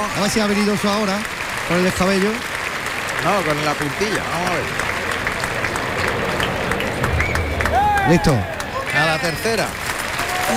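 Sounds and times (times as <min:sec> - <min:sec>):
bullfight audience applauding a mounted bullfighter in the ring: 0:00.0 - 0:10.5
speech: 0:00.2 - 0:02.5, 0:03.2 - 0:04.9, 0:08.0 - 0:09.8.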